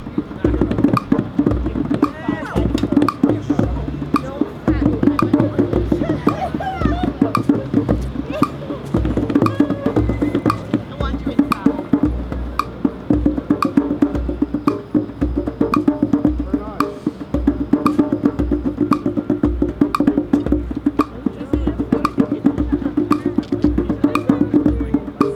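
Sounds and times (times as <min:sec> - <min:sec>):
tam-tam: 0:00.0 - 0:25.3
laughter: 0:05.5 - 0:10.1, 0:21.4 - 0:24.7.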